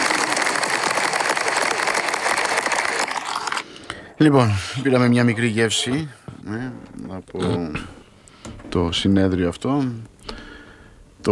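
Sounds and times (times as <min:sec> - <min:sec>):
crowd applauding: 0:00.0 - 0:03.6
speech: 0:04.2 - 0:08.0, 0:08.6 - 0:10.4.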